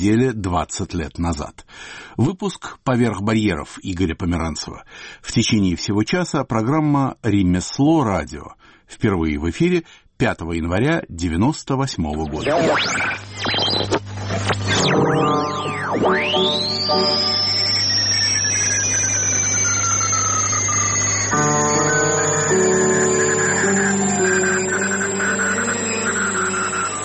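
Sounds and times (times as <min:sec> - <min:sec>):
speech: 0:00.0 - 0:17.4, 0:21.3 - 0:21.8
electronic radio-art composition of sweeping tones: 0:12.2 - 0:27.0
layered harmonic drones: 0:12.3 - 0:27.0
steady low hum: 0:13.0 - 0:27.0
sustained high whistle: 0:14.6 - 0:27.0.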